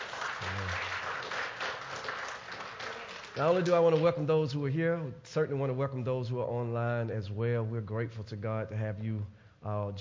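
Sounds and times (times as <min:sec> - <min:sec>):
hand clapping: 0:00.0 - 0:04.2
speech: 0:03.4 - 0:09.9.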